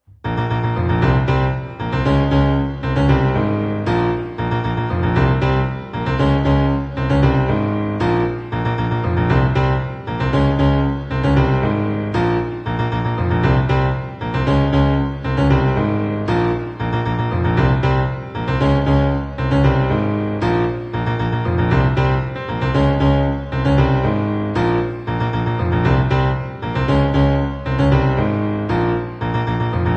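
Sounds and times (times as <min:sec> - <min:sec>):
piano cover: 0:00.2 - 0:29.9.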